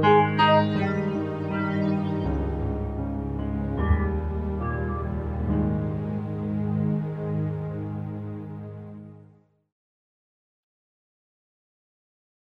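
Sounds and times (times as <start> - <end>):
ambient music: 0.0 - 9.5.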